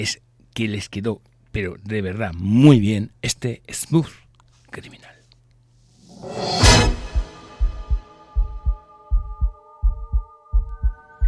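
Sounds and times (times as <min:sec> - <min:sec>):
speech: 0:00.0 - 0:05.2
swelling low tone: 0:06.3 - 0:11.2
sustained humming chord: 0:06.4 - 0:11.2
heartbeat sounds from a recording: 0:06.6 - 0:11.2.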